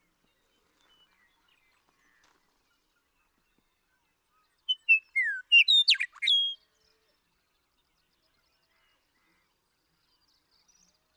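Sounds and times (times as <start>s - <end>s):
Western meadowlark song: 4.7s - 6.6s.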